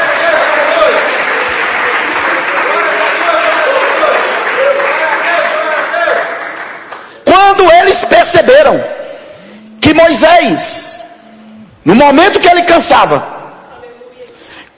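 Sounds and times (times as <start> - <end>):
audience clapping hands in praise: 0.0 - 7.2
speech: 7.6 - 9.0, 10.0 - 10.9, 11.9 - 13.3.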